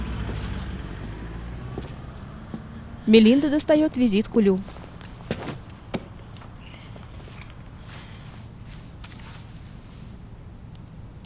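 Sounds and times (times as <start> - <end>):
car engine rumbling as a man drives away: 0.0 - 11.2
speech: 3.1 - 4.8
brief faint hisses: 6.6 - 10.3.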